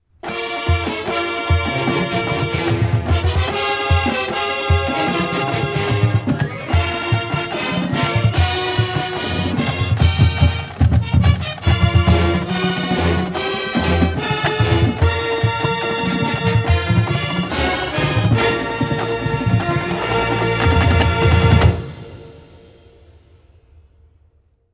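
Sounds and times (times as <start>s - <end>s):
marching band fanfare: 0.2s - 23.4s.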